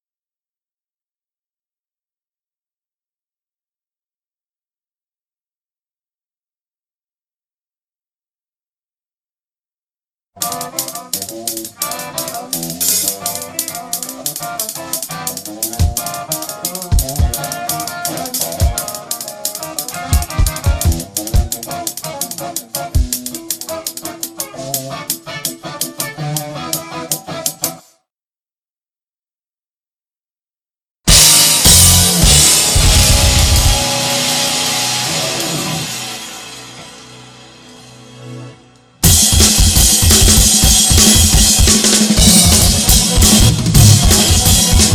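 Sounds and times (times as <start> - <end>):
drums: 10.4 - 27.8, 31.1 - 37.9, 39.0 - 44.9.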